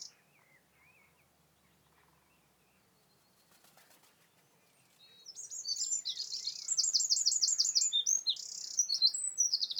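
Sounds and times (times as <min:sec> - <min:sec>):
Eurasian wren Troglodytes troglodytes singing: 0:00.0 - 0:00.2, 0:05.1 - 0:09.7.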